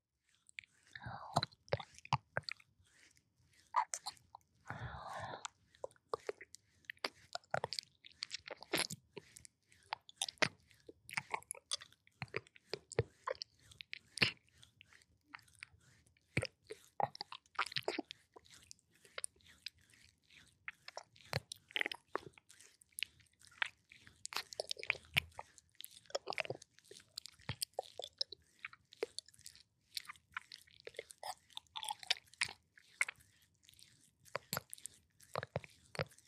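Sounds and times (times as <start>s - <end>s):
wet ear-licking ASMR mouth sounds: 0.4s - 36.2s
faint whispery breath: 4.6s - 5.6s.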